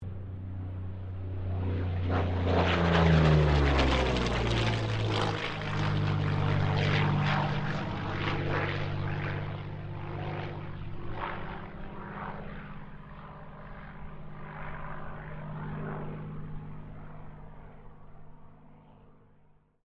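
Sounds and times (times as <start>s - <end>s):
P-40 Kittyhawk aircraft passing: 0.0s - 19.6s.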